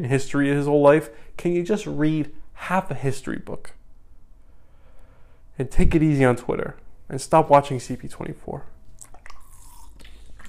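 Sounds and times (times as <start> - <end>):
speech: 0.0 - 3.8, 5.6 - 8.7
person sipping water: 8.9 - 10.4.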